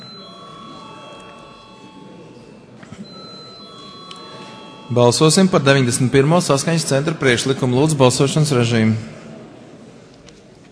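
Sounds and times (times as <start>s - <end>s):
parliament chamber bell ringing before a vote: 0.0s - 6.2s
low murmur of voices: 0.0s - 10.7s
speech: 4.9s - 9.2s.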